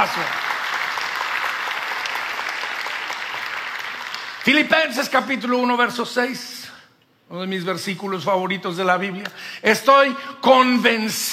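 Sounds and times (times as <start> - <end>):
speech: 0.0 - 0.5, 4.4 - 6.6, 7.3 - 11.3
audience applauding: 0.0 - 4.8.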